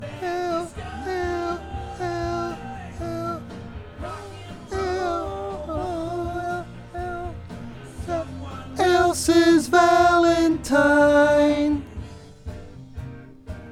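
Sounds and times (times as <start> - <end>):
backing vocals: 0.0 - 13.4.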